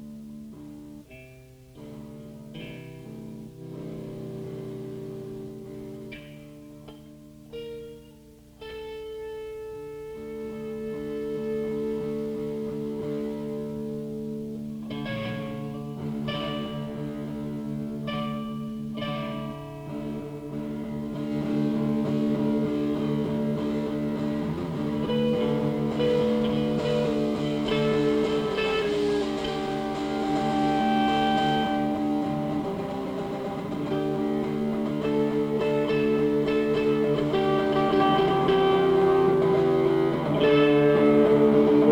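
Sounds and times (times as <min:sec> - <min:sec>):
punk rock music: 0:10.4 - 0:41.9.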